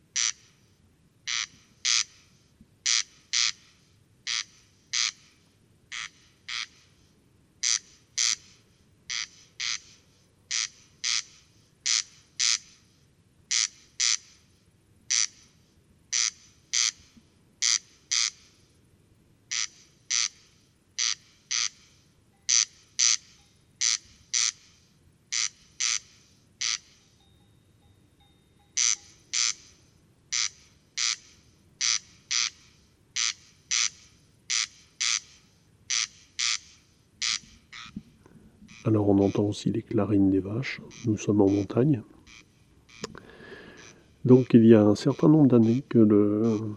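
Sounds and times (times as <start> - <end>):
corn crake rasping double notes: 0.1 - 0.6, 1.2 - 7.0, 7.6 - 12.9, 13.5 - 14.5, 15.1 - 18.7, 19.5 - 46.7
speech: 38.9 - 42.2, 44.3 - 46.7.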